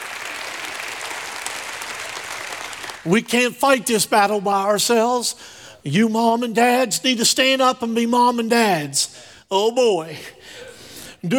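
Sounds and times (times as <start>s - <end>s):
audience clapping: 0.0s - 3.4s
speech: 3.0s - 10.6s.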